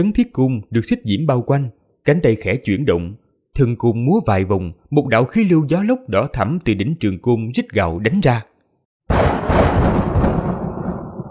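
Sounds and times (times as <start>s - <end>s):
speech: 0.0s - 8.5s
thunder rumble sound effect: 9.1s - 11.2s.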